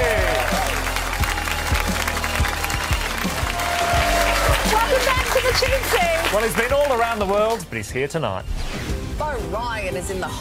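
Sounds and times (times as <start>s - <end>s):
audience applause thanking a guest on a show: 0.0s - 7.7s
speech: 6.3s - 10.3s.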